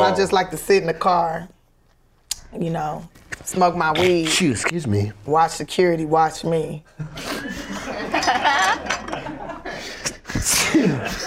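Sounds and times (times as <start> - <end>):
speech: 0.0 - 1.6, 2.5 - 7.6, 10.4 - 11.2
laughter: 7.0 - 10.0
sneeze: 10.3 - 11.1.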